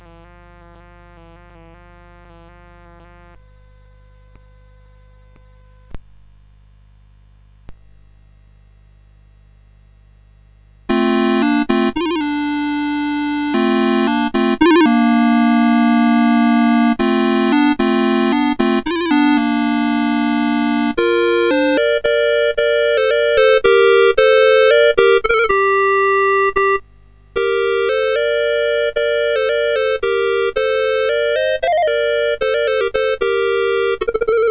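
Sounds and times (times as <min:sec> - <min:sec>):
dance tune on CSG8580R5: 0:10.9 - 0:26.8, 0:27.4 - 0:34.4.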